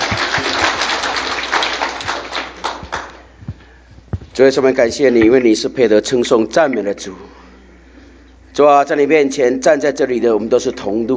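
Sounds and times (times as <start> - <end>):
audience applause: 0.0 - 3.3
speech: 4.4 - 7.4, 8.6 - 11.1.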